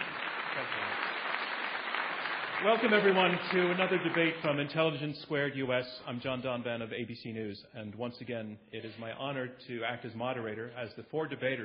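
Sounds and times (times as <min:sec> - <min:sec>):
audience round of applause: 0:00.0 - 0:04.7
speech: 0:02.6 - 0:11.6.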